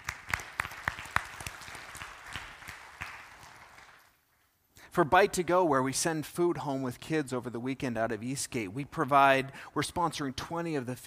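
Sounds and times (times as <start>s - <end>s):
audience applause: 0.0s - 4.1s
speech: 5.0s - 11.0s.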